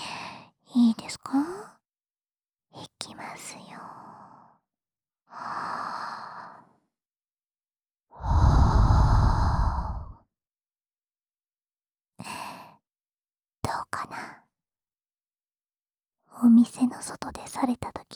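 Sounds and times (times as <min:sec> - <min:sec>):
breath blown softly into the ear: 0:08.2 - 0:10.2
speech: 0:16.4 - 0:18.1.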